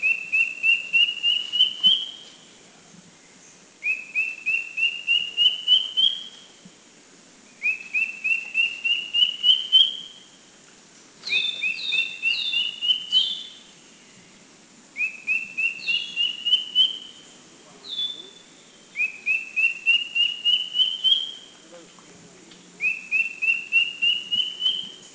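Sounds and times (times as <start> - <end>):
Philippine drongo-cuckoo singing rising whistled phrases at Makiling, Philippines: 0.0 - 2.4, 3.8 - 6.5, 7.5 - 10.3, 11.2 - 13.6, 15.0 - 21.6, 22.8 - 25.1.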